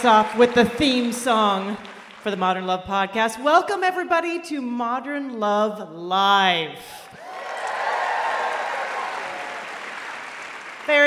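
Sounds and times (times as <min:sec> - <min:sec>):
audience applause: 0:00.0 - 0:02.3, 0:07.2 - 0:11.0
speech: 0:00.0 - 0:07.1, 0:10.9 - 0:11.0.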